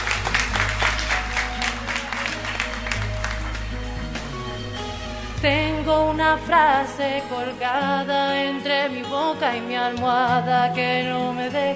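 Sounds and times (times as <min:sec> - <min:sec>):
crowd applauding warmly: 0:00.0 - 0:05.4
speech: 0:05.4 - 0:11.7.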